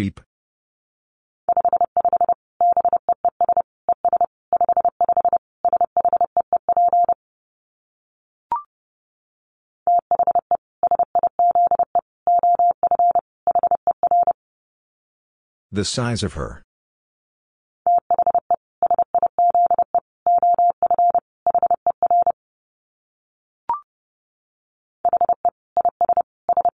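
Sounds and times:
speech: 0.0 - 0.2, 15.8 - 16.6
Morse code tones at 30 wpm: 1.5 - 7.2, 9.9 - 14.4, 17.9 - 22.4, 25.1 - 26.7.

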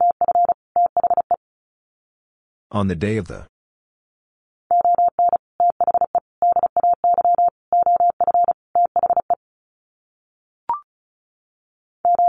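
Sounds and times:
Morse code beeps: 0.0 - 1.4, 4.7 - 9.4, 12.1 - 12.2
person speaking: 2.7 - 3.5.

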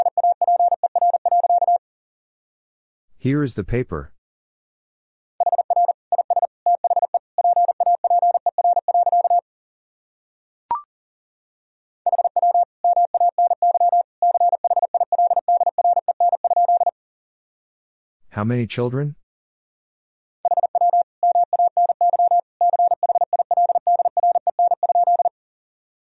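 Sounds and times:
Morse code tones at 40 wpm: 0.0 - 1.8, 5.4 - 9.4, 12.1 - 16.9, 20.5 - 25.3
speech: 3.2 - 4.1, 18.4 - 19.2.

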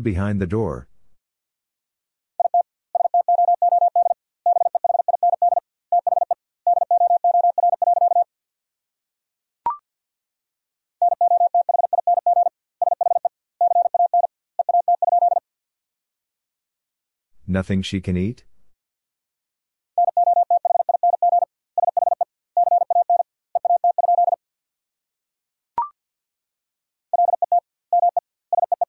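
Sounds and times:
speech: 0.0 - 0.9, 17.5 - 18.5
Morse code beeps at 50 words per minute: 2.4 - 8.3, 11.0 - 15.4, 20.0 - 24.4, 27.2 - 28.8.

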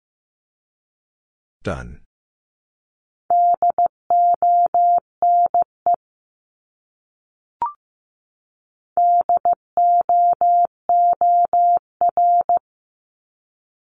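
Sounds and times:
speech: 1.7 - 2.1
Morse code beeps spelling a word: 3.3 - 5.7, 9.0 - 12.6.

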